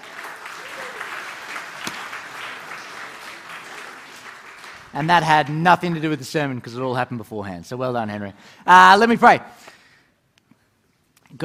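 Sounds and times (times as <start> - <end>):
round of applause: 0.0 - 6.5
speech: 4.9 - 9.7.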